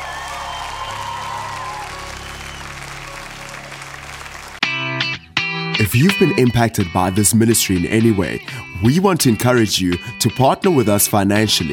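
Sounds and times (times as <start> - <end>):
crowd clapping and cheering: 0.0 - 5.3
loud sustained musical chord: 0.6 - 5.2
speech: 5.8 - 11.7.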